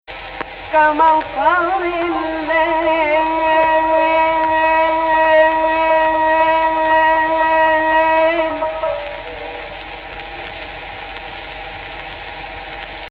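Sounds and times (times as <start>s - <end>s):
voice singing AHH in Egypt Rast: 0.7s - 10.0s.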